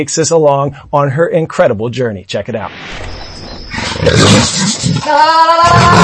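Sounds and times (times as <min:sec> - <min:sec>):
speech: 0:00.0 - 0:03.2, 0:04.0 - 0:06.0
wild jaguar roaring and growling: 0:03.8 - 0:06.0.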